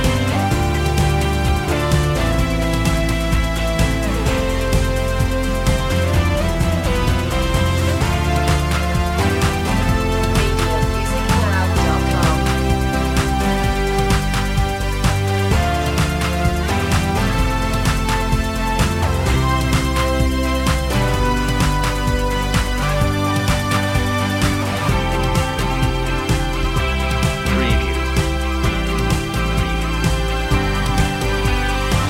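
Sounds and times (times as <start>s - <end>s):
instrumental music: 0.0s - 32.0s.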